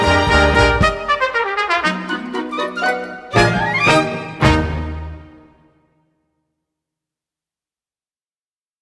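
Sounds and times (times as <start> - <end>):
exit march music: 0.0 - 5.8.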